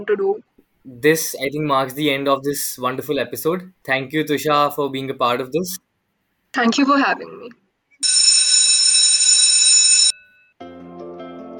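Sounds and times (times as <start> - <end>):
speech: 0.0 - 5.9, 6.5 - 8.2
college bell ringing with a high buzzing tone: 8.0 - 10.6.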